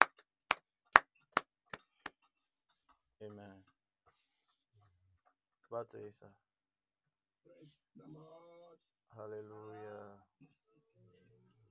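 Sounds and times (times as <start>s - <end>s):
hand claps: 0.0s - 4.5s
speech: 3.2s - 3.7s, 5.7s - 6.5s, 7.4s - 10.5s.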